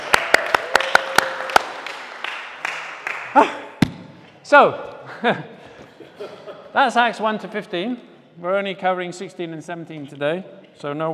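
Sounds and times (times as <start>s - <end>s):
crowd round of applause: 0.0s - 3.3s
speech: 4.5s - 5.6s, 6.8s - 11.1s.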